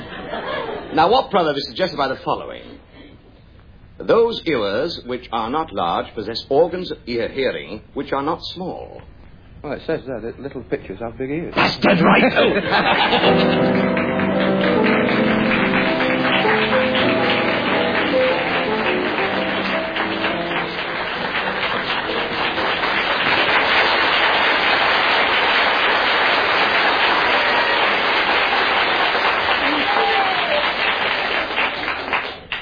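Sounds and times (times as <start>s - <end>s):
laughter: 0.0s - 0.9s, 11.6s - 13.9s
speech: 1.0s - 2.7s, 4.0s - 14.1s
audience applause: 12.6s - 32.6s.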